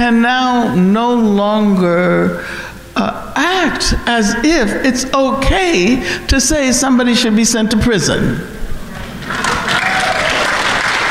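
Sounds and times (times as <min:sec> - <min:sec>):
speech: 0:00.0 - 0:08.6
audience applause: 0:08.9 - 0:11.0.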